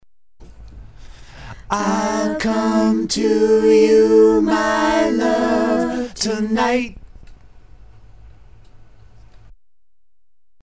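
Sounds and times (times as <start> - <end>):
vocals: 1.1 - 7.1.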